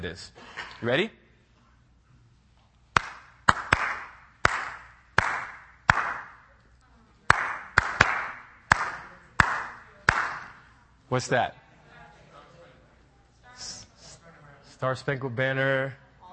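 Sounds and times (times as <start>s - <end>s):
speech: 0.0s - 1.2s, 11.1s - 11.6s, 14.8s - 16.0s
hand claps tapping out a song's rhythm: 2.9s - 6.4s, 7.3s - 10.7s.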